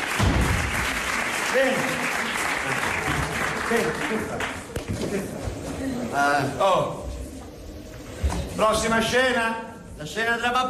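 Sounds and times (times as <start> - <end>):
audience applause: 0.0 - 5.4
speech: 1.6 - 2.0, 3.7 - 7.0, 8.6 - 10.6.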